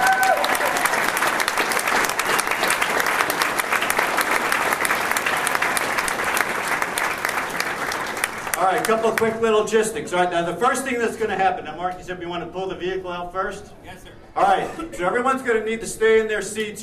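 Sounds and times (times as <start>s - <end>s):
audience applause: 0.0s - 9.3s
speech: 8.9s - 16.8s.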